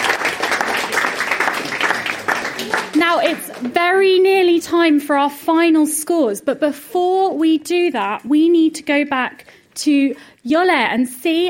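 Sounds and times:
audience round of applause on a competition show: 0.0 - 3.7
speech: 3.1 - 11.4.

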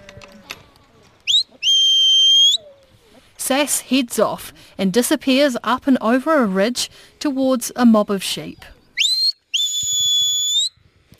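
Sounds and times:
shepherd's whistle command to a sheepdog: 1.3 - 2.6, 9.0 - 10.8
speech: 3.5 - 8.8.

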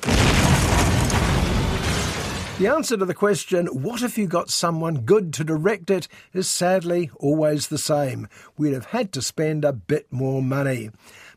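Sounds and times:
explosions in a film scene: 0.0 - 2.8
debris crackling: 0.0 - 2.9
speech: 2.6 - 11.2.

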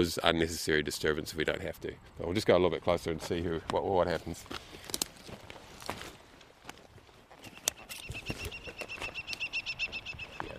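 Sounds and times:
speech: 0.0 - 4.8
footsteps: 3.1 - 10.5
New Zealand falcon calling: 7.6 - 10.5.

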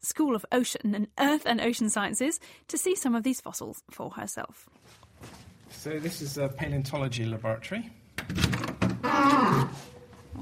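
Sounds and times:
speech: 0.0 - 8.5, 9.2 - 10.4
shuffling and handling noises: 4.7 - 6.4
squeaky door creaking open: 8.6 - 10.0.

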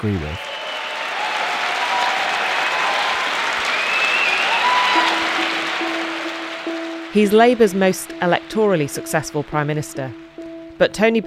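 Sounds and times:
speech: 0.0 - 0.5, 7.1 - 10.2, 10.8 - 11.2
pro-Blair audience applause and cheering greeting Tony Blair: 0.0 - 10.8
audience whistles: 0.3 - 1.2, 2.6 - 7.0.

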